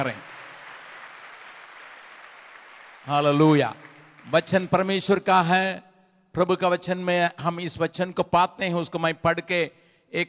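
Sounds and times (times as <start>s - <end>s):
speech: 0.0s - 0.3s, 3.0s - 10.2s
large crowd applauding loudly: 0.0s - 4.9s.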